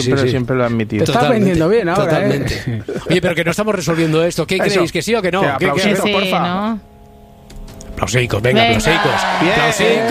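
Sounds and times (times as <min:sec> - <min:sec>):
speech: 0:00.0 - 0:06.9, 0:08.0 - 0:10.0
audience applause: 0:08.7 - 0:10.0.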